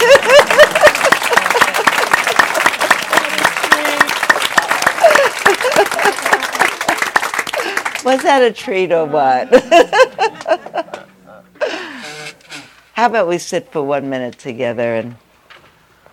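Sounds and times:
cheers: 0:00.0 - 0:08.0
laughter: 0:00.0 - 0:08.3, 0:09.2 - 0:12.3
room full of people applauding: 0:00.0 - 0:08.4
speech: 0:08.1 - 0:10.2, 0:13.0 - 0:15.2.

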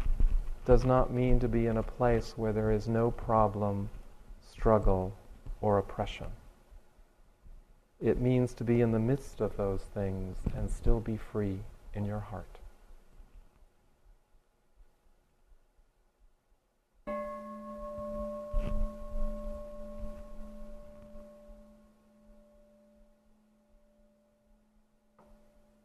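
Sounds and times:
speech: 0:00.7 - 0:06.4, 0:08.0 - 0:12.5
single struck bell ringing with deep hum and bright overtones: 0:17.1 - 0:25.0.

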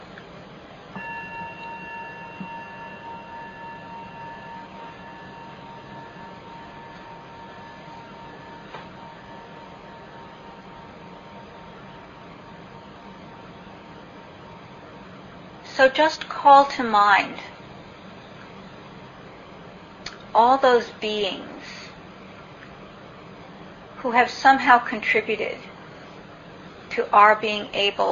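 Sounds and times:
meditation bell ringing: 0:01.0 - 0:13.0
speech: 0:15.8 - 0:17.5, 0:20.4 - 0:21.8, 0:24.0 - 0:25.7, 0:27.0 - 0:28.1.

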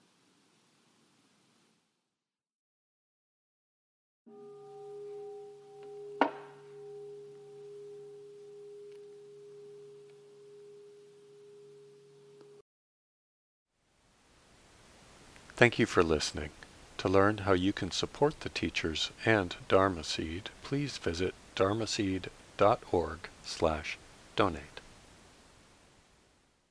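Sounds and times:
meditation bell ringing: 0:04.3 - 0:12.0
speech: 0:15.6 - 0:24.8.

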